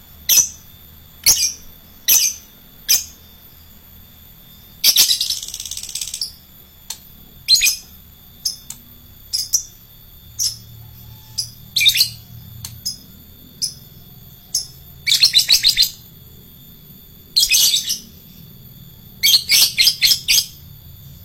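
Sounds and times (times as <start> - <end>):
lovebird chirping: 0.2 - 3.7, 4.6 - 6.5, 7.4 - 16.1, 17.3 - 18.4, 19.2 - 20.6.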